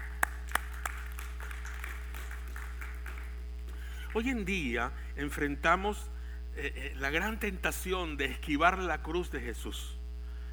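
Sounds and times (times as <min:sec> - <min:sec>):
faint audience applause: 0:00.0 - 0:04.3
low constant hum: 0:00.0 - 0:10.5
speech: 0:04.2 - 0:10.0.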